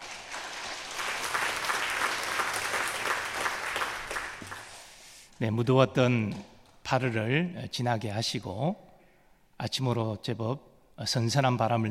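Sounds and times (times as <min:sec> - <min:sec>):
encouraging applause from the audience: 0:00.0 - 0:05.0
speech: 0:05.4 - 0:08.9, 0:09.6 - 0:11.8.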